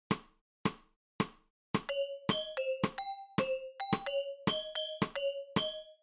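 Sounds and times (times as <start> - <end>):
musical scale: 1.9 - 6.0.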